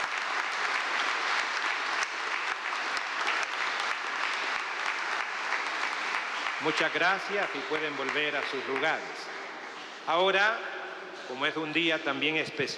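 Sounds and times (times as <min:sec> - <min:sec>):
audience applause: 0:00.0 - 0:09.9
speech: 0:06.6 - 0:09.4, 0:10.1 - 0:12.7.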